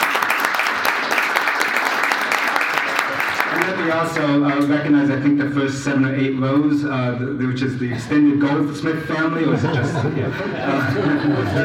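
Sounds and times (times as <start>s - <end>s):
crowd applauding: 0.0s - 4.7s
speech: 3.8s - 11.6s
laughter: 8.9s - 11.6s.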